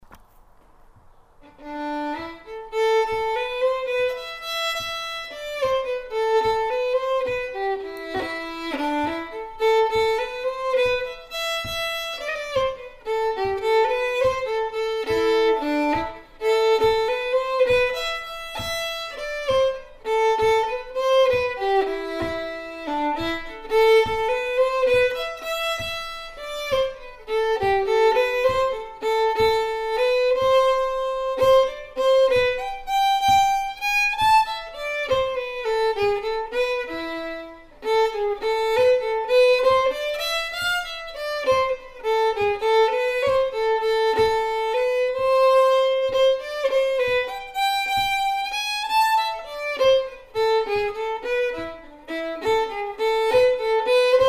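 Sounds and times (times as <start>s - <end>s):
jig on fiddle: 0.0s - 54.2s.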